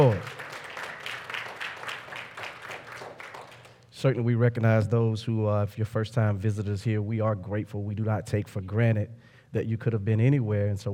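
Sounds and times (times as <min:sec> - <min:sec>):
speech: 0:00.0 - 0:00.4, 0:04.0 - 0:10.9
church congregation rhythmic hand clapping in praise: 0:00.0 - 0:03.9.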